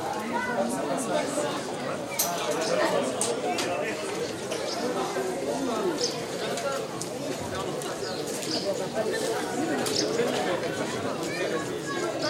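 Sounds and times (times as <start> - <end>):
village ambience with walking: 0.0 - 12.2.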